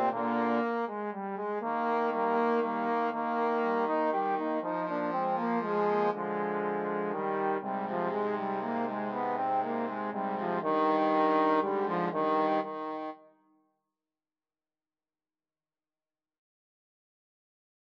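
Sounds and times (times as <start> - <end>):
trombone playing a minuet: 0.0 - 13.2.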